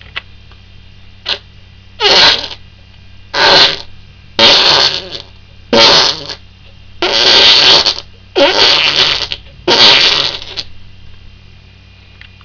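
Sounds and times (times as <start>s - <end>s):
fart: 1.2s - 1.4s, 2.0s - 2.6s, 3.3s - 6.4s, 7.0s - 10.7s.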